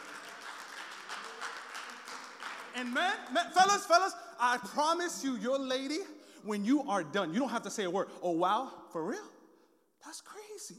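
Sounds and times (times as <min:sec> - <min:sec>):
round of applause: 0:00.0 - 0:04.1
speech: 0:02.8 - 0:09.4, 0:10.0 - 0:10.7.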